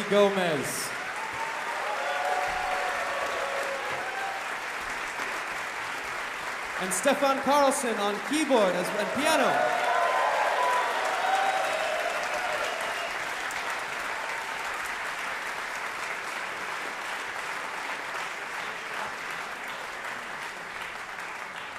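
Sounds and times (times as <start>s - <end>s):
audience applause: 0.0s - 21.7s
speech: 0.1s - 1.0s, 6.8s - 9.8s.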